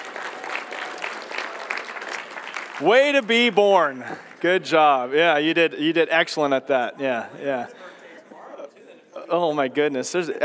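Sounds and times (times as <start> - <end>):
audience clapping: 0.0 - 4.9
speech: 2.8 - 7.8, 9.3 - 10.4.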